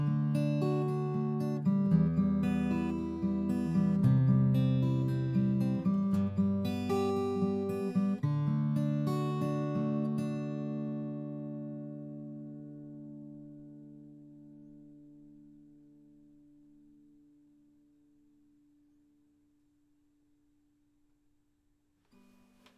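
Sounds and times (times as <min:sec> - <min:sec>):
fingerstyle guitar playing: 0:00.0 - 0:17.2.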